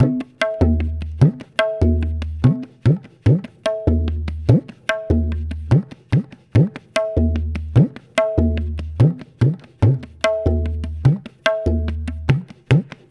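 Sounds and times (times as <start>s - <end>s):
tabla: 0.0s - 13.0s.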